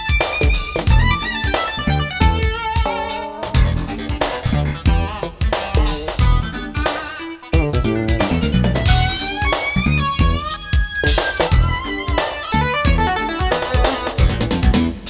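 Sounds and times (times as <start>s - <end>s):
synthesizer factory demo songs: 0.0s - 5.5s, 6.2s - 15.0s.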